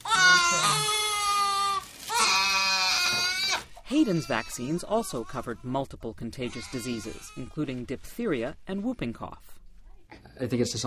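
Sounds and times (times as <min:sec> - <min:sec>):
baby crying after vaccination: 0:00.0 - 0:05.7, 0:06.4 - 0:07.6
speech: 0:03.9 - 0:09.6, 0:10.4 - 0:10.8.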